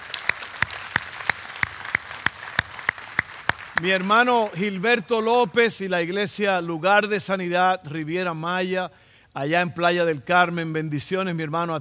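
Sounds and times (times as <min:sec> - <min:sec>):
audience applause: 0:00.0 - 0:04.6
speech: 0:03.8 - 0:11.7.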